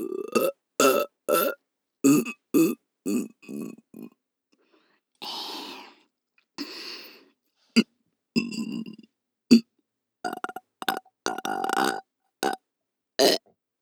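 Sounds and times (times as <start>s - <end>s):
person burping for ASMR: 0.0s - 4.1s, 8.4s - 9.6s, 10.3s - 12.6s, 13.2s - 13.4s.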